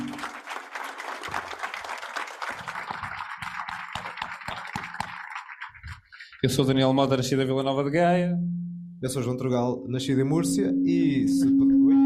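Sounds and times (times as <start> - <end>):
audience applause: 0.0 - 6.4
speech: 6.4 - 11.8.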